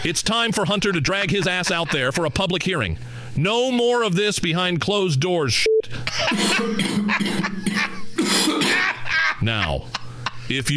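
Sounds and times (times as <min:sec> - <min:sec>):
laughter: 0:00.0 - 0:02.8, 0:06.0 - 0:10.5
speech: 0:00.0 - 0:08.8, 0:09.4 - 0:10.7
wet hacking cough: 0:06.1 - 0:09.0.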